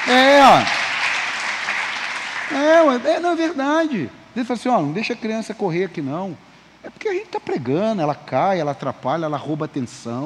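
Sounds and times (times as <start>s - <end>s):
audience applause: 0.0s - 3.0s
speech: 0.1s - 0.8s, 2.5s - 10.2s.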